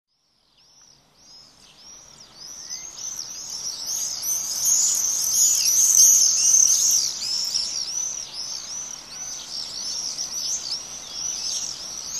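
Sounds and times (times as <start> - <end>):
common swifts screaming: 1.8 - 12.1.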